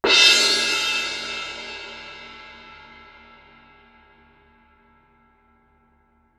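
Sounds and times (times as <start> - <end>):
suspended cymbal crash with mallet: 0.0 - 4.2.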